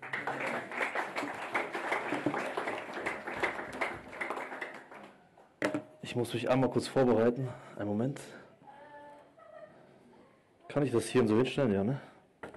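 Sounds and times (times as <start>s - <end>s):
audience applause: 0.0s - 5.2s
speech: 6.2s - 8.4s, 10.8s - 12.1s.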